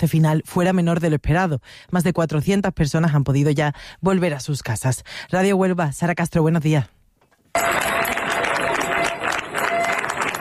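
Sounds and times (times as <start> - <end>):
speech: 0.0 - 7.9
neighbours applauding departing emergency troops: 7.6 - 10.4.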